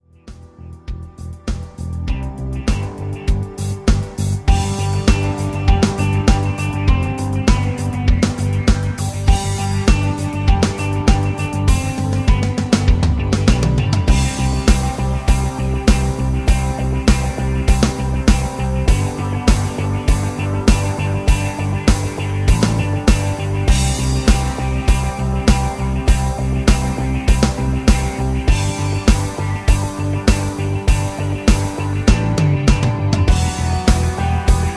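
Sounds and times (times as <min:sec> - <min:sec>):
rhythm: 0:00.2 - 0:34.7.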